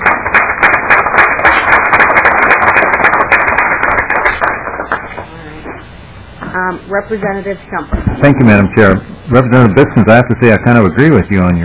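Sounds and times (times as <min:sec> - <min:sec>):
applause welcoming visitors: 0:00.0 - 0:05.3
speech: 0:06.9 - 0:11.6.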